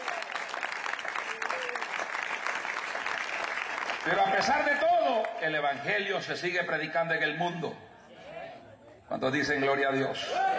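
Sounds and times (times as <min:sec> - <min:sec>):
church audience applauding: 0:00.0 - 0:05.9
speech: 0:04.0 - 0:07.9, 0:09.1 - 0:10.5.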